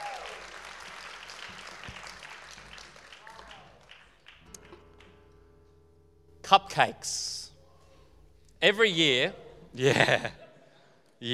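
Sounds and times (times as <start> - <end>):
audience applause: 0.0 - 5.4
speech: 6.5 - 7.4, 8.6 - 10.4, 11.2 - 11.3
laughter: 9.6 - 10.9.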